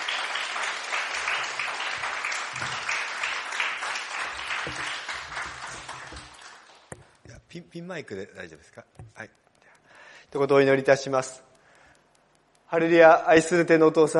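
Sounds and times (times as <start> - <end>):
audience applause welcoming speaker: 0.0 - 6.9
speech: 7.6 - 9.4, 10.3 - 11.5, 12.7 - 14.1.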